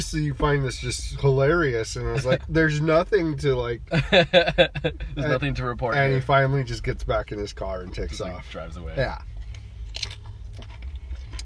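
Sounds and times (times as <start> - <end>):
speech: 0.0 - 9.3
low hum: 0.0 - 11.4
laughter: 3.9 - 5.3
chewing crunchy mini tacos: 9.4 - 11.4.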